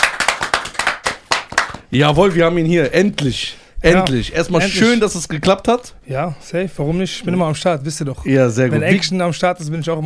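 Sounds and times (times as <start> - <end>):
audience applause: 0.0 - 1.8
speech: 1.9 - 10.0.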